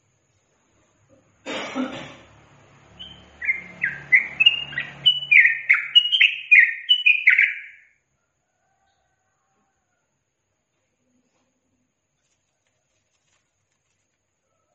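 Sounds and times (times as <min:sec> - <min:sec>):
yellow-vented bulbul singing: 0:02.9 - 0:08.0.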